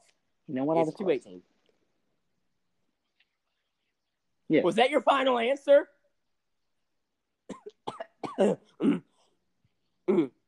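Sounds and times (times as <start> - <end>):
speech: 0.5 - 1.5, 4.5 - 5.9, 8.4 - 9.1, 10.1 - 10.4
coughing and throat clearing: 7.5 - 9.4, 10.0 - 10.4.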